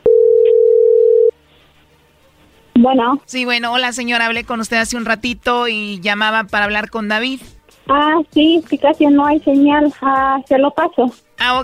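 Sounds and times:
incoming telephone call tone: 0:00.0 - 0:01.3
speech: 0:02.8 - 0:11.6.

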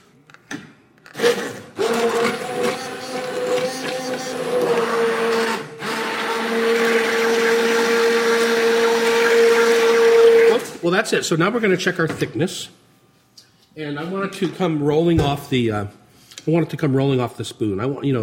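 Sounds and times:
immersion blender pureeing soup in a pan: 0:01.1 - 0:10.8
speech: 0:11.0 - 0:12.8, 0:13.8 - 0:18.2.

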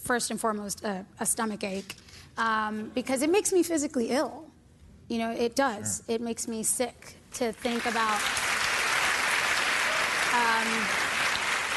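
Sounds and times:
speech: 0:00.1 - 0:04.5, 0:05.1 - 0:08.4, 0:10.3 - 0:11.1
audience applause: 0:07.7 - 0:11.7.

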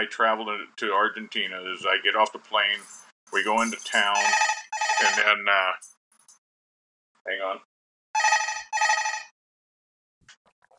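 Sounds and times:
speech: 0:00.0 - 0:05.9, 0:07.2 - 0:07.7
hotel room telephone ringing: 0:04.0 - 0:05.4, 0:08.2 - 0:09.4.

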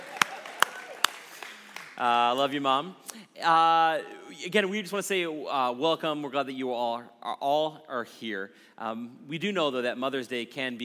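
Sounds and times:
audience clapping: 0:00.0 - 0:02.5
speech: 0:02.0 - 0:10.8.

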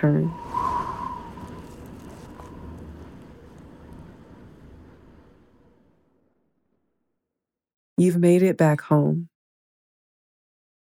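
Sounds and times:
speech: 0:00.0 - 0:00.6, 0:08.0 - 0:09.3
soft breeze rushing with faint whistle: 0:00.0 - 0:06.9.

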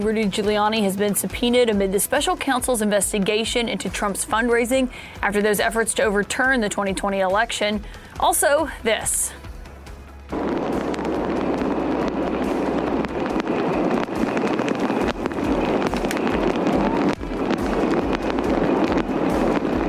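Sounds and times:
speech: 0:00.0 - 0:09.4
powerful storm wind in California: 0:10.3 - 0:19.8.

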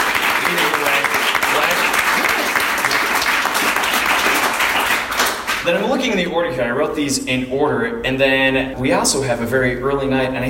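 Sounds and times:
audience applause: 0:00.0 - 0:05.6
speech: 0:05.7 - 0:10.4.

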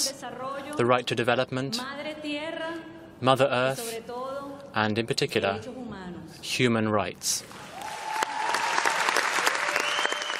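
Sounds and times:
speech: 0:00.0 - 0:04.2, 0:04.8 - 0:05.8, 0:06.4 - 0:07.6
conference audience applause: 0:07.7 - 0:10.3.

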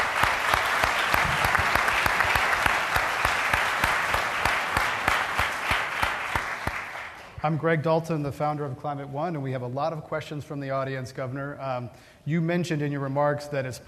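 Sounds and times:
audience applause at a Climate One panel event: 0:00.0 - 0:07.4
speech: 0:07.4 - 0:13.8.

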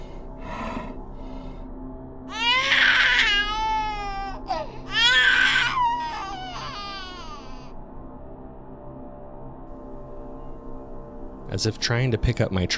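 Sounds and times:
creature mimicking a baby's cry: 0:02.3 - 0:07.7
speech: 0:11.6 - 0:12.7.

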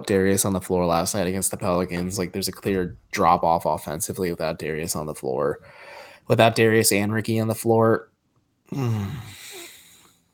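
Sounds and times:
speech: 0:00.0 - 0:08.1, 0:08.7 - 0:09.4
person groaning in pain: 0:08.7 - 0:09.7.

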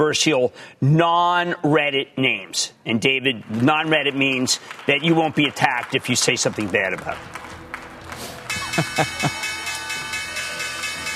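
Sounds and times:
speech: 0:00.0 - 0:07.5, 0:08.8 - 0:09.4
laughter: 0:04.3 - 0:09.8
stock exchange opening bell ringing: 0:08.5 - 0:11.1.

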